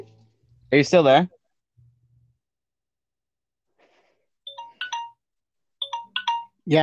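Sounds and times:
speech: 0.7 - 1.3
phone timer alarm electronic chime: 4.5 - 5.2, 5.8 - 6.6.

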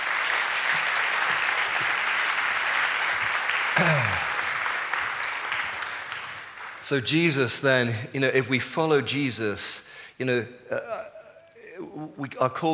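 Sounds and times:
audience applause: 0.0 - 6.8
speech: 6.9 - 11.1, 11.8 - 12.7.

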